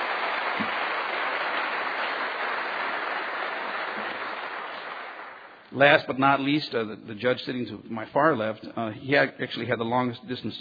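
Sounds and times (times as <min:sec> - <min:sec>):
audience applause: 0:00.0 - 0:05.6
speech: 0:05.7 - 0:10.5.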